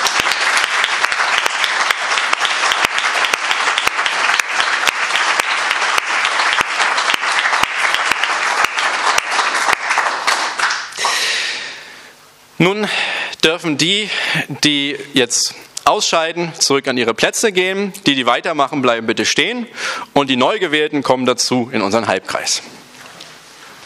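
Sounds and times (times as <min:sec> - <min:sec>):
audience applause: 0:00.0 - 0:11.4
speech: 0:12.6 - 0:22.8.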